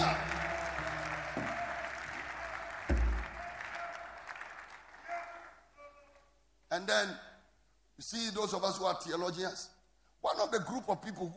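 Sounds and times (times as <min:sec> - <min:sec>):
audience clapping: 0:00.0 - 0:05.7
low thump: 0:02.9 - 0:03.4
speech: 0:06.9 - 0:07.3, 0:08.0 - 0:11.3.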